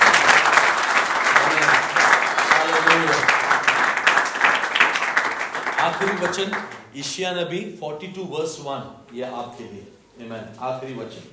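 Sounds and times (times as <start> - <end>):
church congregation clapping hands to glorify God: 0.0 - 6.9
speech: 5.9 - 11.3.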